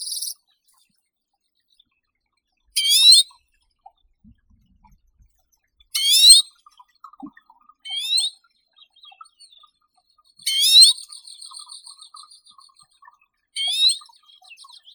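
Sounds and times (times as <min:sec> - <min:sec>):
Arctic redpoll Acanthis hornemanni calling: 0:02.8 - 0:03.2, 0:06.0 - 0:06.5, 0:07.9 - 0:08.3, 0:10.5 - 0:12.3, 0:13.6 - 0:14.6.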